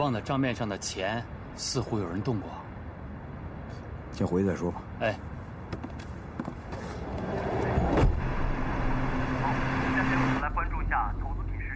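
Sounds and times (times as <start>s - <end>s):
speech: 0.0s - 2.7s, 4.2s - 5.8s
car driving in the early morning: 5.5s - 11.7s.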